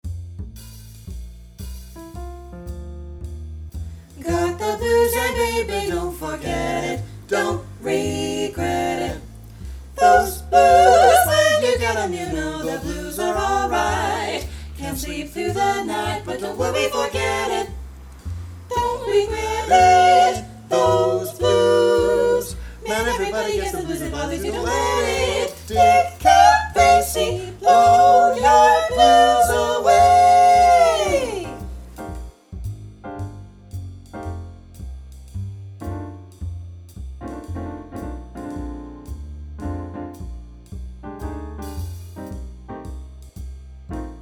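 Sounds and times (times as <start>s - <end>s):
vocal blues etude in F: 4.2s - 9.4s, 10.0s - 17.8s, 18.7s - 31.7s.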